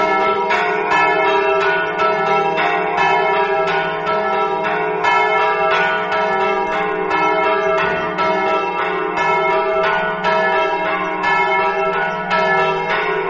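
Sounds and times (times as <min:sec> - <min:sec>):
canebola bells ringing: 0:00.0 - 0:13.2.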